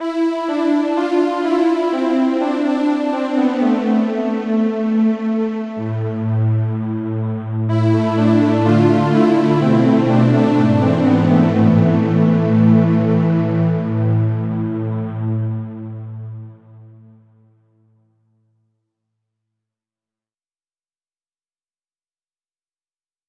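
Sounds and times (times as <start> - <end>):
halo synth pad: 0.0 - 17.2.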